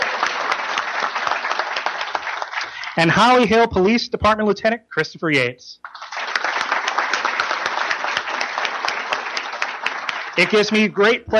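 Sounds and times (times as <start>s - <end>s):
audience applause: 0.0s - 3.4s, 5.8s - 11.3s
speech: 3.0s - 5.9s, 10.4s - 11.3s.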